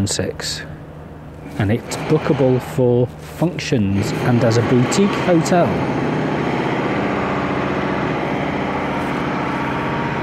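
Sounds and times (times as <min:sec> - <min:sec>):
speech: 0:00.0 - 0:00.7, 0:01.5 - 0:06.2
drilling: 0:01.4 - 0:03.0, 0:03.9 - 0:10.2.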